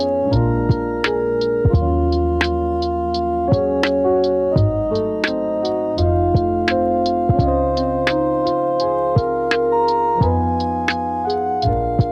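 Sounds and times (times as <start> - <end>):
chill lofi music: 0.0 - 12.1.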